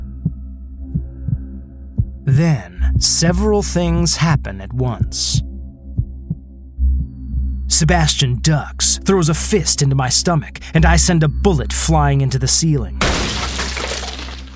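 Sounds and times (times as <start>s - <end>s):
steady low heartbeat thumping: 0.0s - 3.4s, 4.8s - 7.6s
speech: 2.3s - 5.5s, 7.7s - 13.1s.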